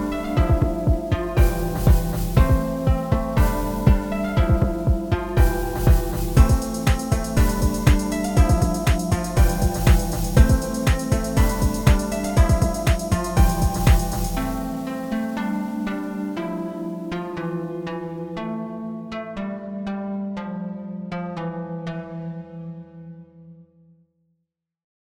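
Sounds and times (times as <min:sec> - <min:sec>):
Berlin beat: 0:00.0 - 0:15.5.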